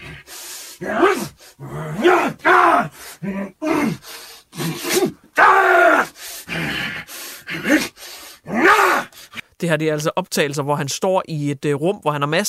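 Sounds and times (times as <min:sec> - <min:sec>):
actor growling and grunting voicing fight scenes: 0:00.0 - 0:09.1
speech: 0:00.8 - 0:03.6, 0:09.6 - 0:12.4.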